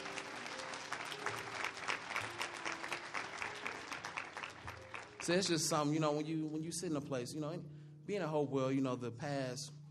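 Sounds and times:
audience hand clapping: 0:00.0 - 0:05.9
speech: 0:05.3 - 0:09.8.

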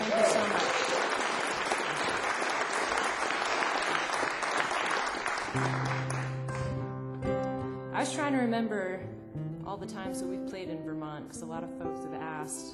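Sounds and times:
audience applause at a live concert for the sound man: 0:00.0 - 0:06.8
speech: 0:08.0 - 0:12.7.

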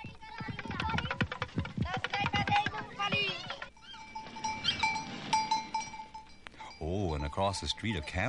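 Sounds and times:
children's toy drum rattle: 0:00.3 - 0:06.3
speech: 0:07.4 - 0:08.2.

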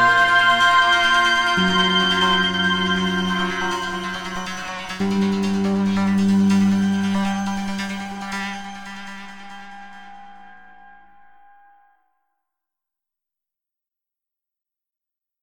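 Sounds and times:
noise: 0:00.0 - 0:11.9.

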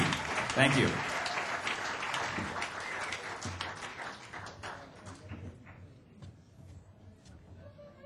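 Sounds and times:
audience applause: 0:00.0 - 0:05.5
speech: 0:00.6 - 0:01.1.

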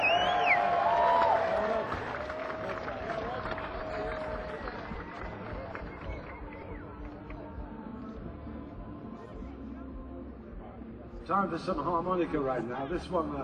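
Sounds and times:
shrill whistles: 0:00.0 - 0:01.2
cheering: 0:00.0 - 0:06.8
crowd clapping: 0:00.0 - 0:07.5
speech: 0:11.3 - 0:13.4.

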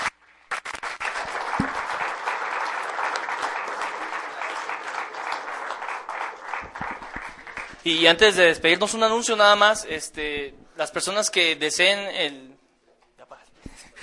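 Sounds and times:
audience applause: 0:00.5 - 0:08.0
speech: 0:07.9 - 0:12.5.

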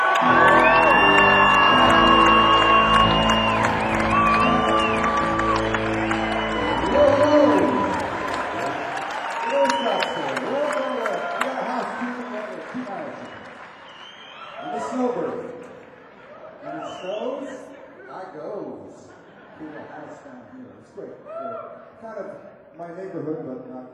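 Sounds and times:
concert crowd cheering and whooping to welcome a rock band's drummer: 0:00.0 - 0:17.0
laughter: 0:18.9 - 0:20.7.

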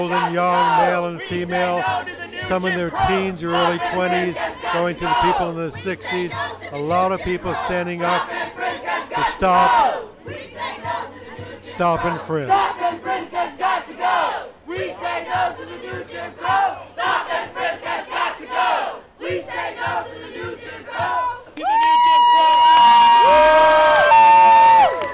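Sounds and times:
speech: 0:00.0 - 0:08.4, 0:09.4 - 0:10.4, 0:11.8 - 0:14.2
protest crowd chanting: 0:00.0 - 0:21.7
protest crowd yelling and whooping: 0:21.5 - 0:25.1.

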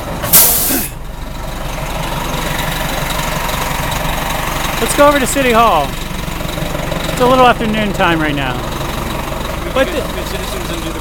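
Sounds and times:
bus engine idling: 0:00.0 - 0:11.0
bus air brake hiss: 0:00.2 - 0:01.0
speech: 0:04.8 - 0:06.0, 0:07.2 - 0:08.7, 0:09.8 - 0:11.0.

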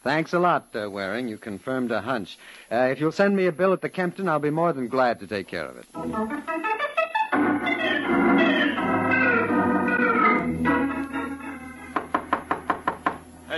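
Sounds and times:
speech: 0:00.0 - 0:06.6
orchestral music: 0:06.0 - 0:12.3
loud knocking on a door: 0:12.0 - 0:13.2.

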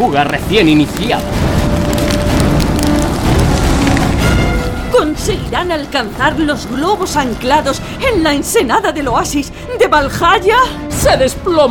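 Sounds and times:
speech: 0:00.0 - 0:01.4, 0:05.0 - 0:11.7
dense hail pellets striking a surface: 0:00.0 - 0:10.2
gust of wind roaring: 0:00.3 - 0:08.6.

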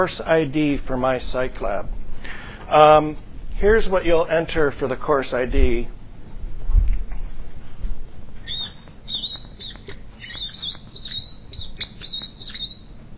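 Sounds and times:
speech: 0:00.0 - 0:02.0, 0:02.7 - 0:06.0
squeak: 0:08.4 - 0:12.9.

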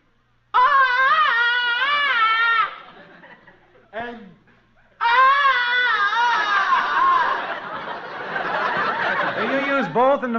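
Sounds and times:
jungle man movie yell: 0:00.5 - 0:03.0, 0:05.0 - 0:08.0
laughter: 0:01.8 - 0:05.3, 0:06.0 - 0:10.2
speech: 0:10.2 - 0:10.3.

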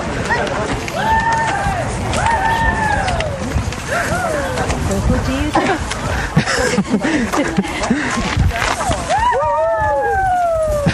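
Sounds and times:
crowd murmur: 0:00.0 - 0:10.9
people yelling back and forth: 0:00.2 - 0:04.9, 0:08.9 - 0:10.9
laughter: 0:05.4 - 0:09.1.

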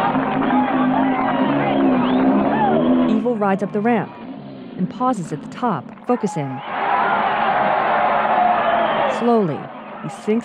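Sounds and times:
crowd cheering and applauding: 0:00.0 - 0:03.4, 0:06.2 - 0:10.4
speech: 0:03.4 - 0:04.2, 0:04.8 - 0:06.7, 0:09.2 - 0:10.4.

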